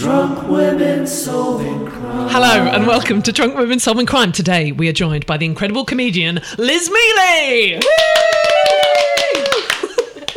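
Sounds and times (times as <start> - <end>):
speech: 0.1 - 8.2
small group clapping: 7.7 - 10.3
whoop: 7.8 - 9.7.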